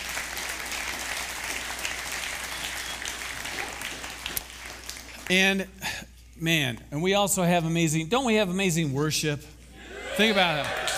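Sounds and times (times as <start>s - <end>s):
crowd applause: 0.0s - 5.3s, 10.1s - 10.9s
speech: 5.3s - 9.6s, 10.2s - 10.8s.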